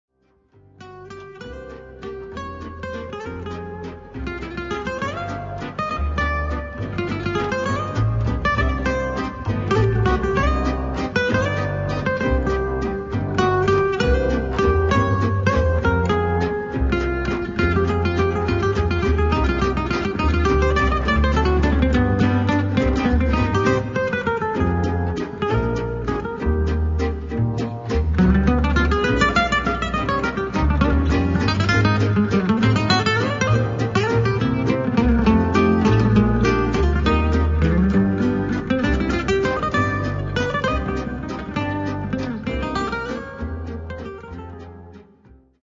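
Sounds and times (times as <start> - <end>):
waltz music: 0.6 - 45.4.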